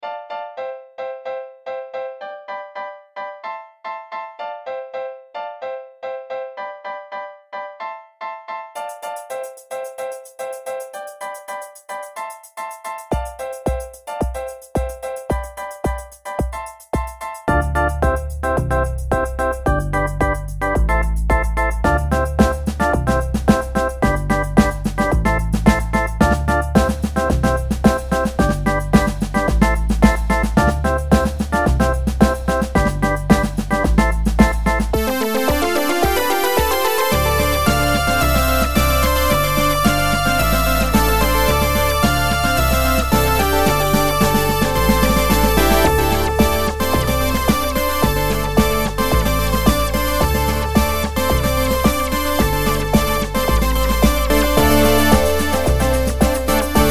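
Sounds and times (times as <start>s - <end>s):
old school club track: 13.1s - 56.8s.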